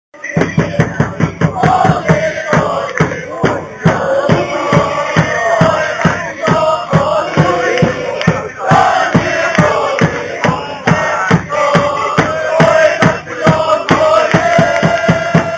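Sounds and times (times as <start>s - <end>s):
chanting: 0.2s - 15.5s.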